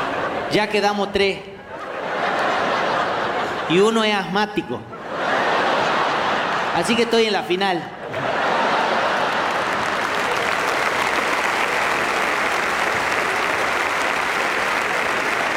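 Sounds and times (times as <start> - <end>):
laughter: 0.0 - 15.5
speech: 0.5 - 1.5, 3.7 - 4.9, 6.8 - 8.3
audience applause: 8.2 - 15.5.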